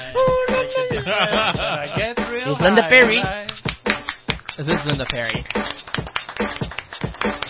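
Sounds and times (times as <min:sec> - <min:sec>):
laughter: 0:00.2 - 0:03.3
hands clapping to a beat: 0:01.3 - 0:07.4
speech: 0:02.5 - 0:03.4, 0:04.6 - 0:06.0.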